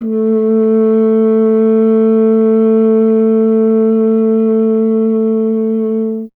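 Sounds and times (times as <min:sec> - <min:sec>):
brass French horn: 0:00.0 - 0:06.3.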